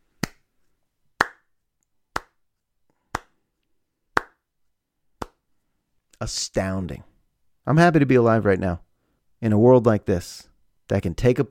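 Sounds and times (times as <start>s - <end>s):
slow deliberate hand claps: 0.2s - 0.5s, 1.2s - 1.5s, 2.1s - 3.4s, 4.1s - 4.5s, 5.2s - 5.4s
speech: 6.2s - 7.1s, 7.7s - 8.8s, 9.4s - 11.4s.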